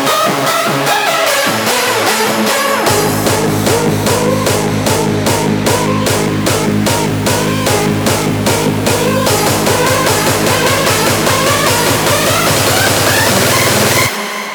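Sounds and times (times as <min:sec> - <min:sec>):
remixed music: 0:00.0 - 0:14.5.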